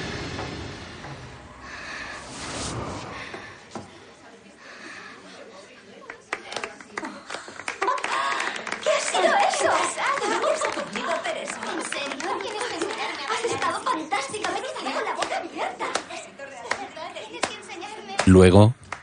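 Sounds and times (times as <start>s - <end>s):
girls clapping in amazement in a dance rehearsal room: 6.0s - 17.6s
speech: 18.3s - 18.8s.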